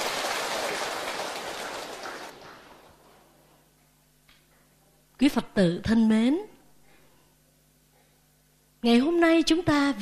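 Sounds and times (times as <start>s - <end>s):
crowd applauding: 0.0s - 3.1s
speech: 5.2s - 6.5s, 8.8s - 10.0s.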